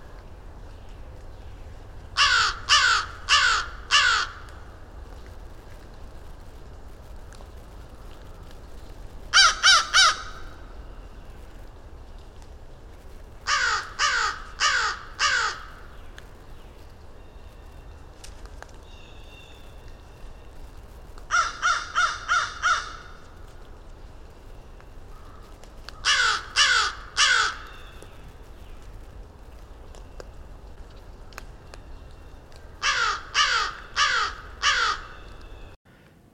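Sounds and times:
crow cawing: 2.2 - 4.6, 9.3 - 10.6, 13.4 - 15.8, 21.3 - 23.3, 25.1 - 28.0, 32.8 - 35.3.

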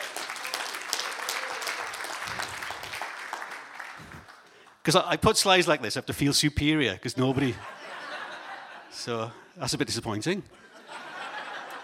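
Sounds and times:
audience applause: 0.0 - 4.7
speech: 4.8 - 7.8, 9.0 - 10.7
laughter: 7.2 - 9.6, 10.5 - 11.8.

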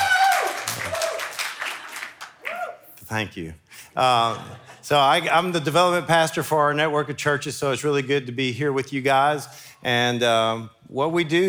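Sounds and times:
audience applause: 0.0 - 2.8
speech: 3.1 - 11.4.

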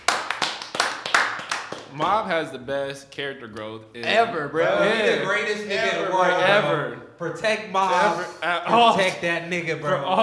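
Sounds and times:
hand clapping: 0.0 - 2.1
speech: 2.0 - 10.2.

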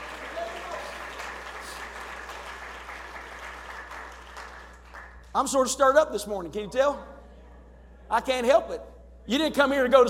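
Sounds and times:
audience clapping: 0.0 - 5.4
speech: 5.4 - 7.2, 8.1 - 10.0.

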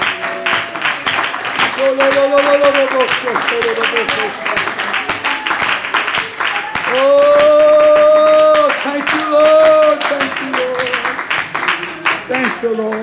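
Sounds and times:
audience clapping: 0.0 - 13.0
speech: 1.8 - 4.6, 6.9 - 7.7, 12.3 - 13.0.

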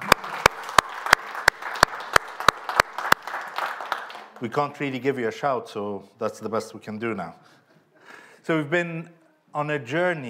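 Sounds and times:
audience applause: 0.0 - 4.4
speech: 4.4 - 7.5, 8.5 - 10.2.

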